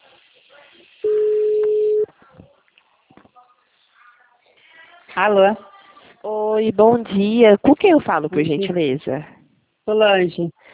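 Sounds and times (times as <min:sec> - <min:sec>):
faint murmuring voices: 0:00.0 - 0:06.3
telephone ringing tone: 0:01.0 - 0:02.1
speech: 0:05.2 - 0:05.7, 0:06.6 - 0:09.3, 0:09.9 - 0:10.7.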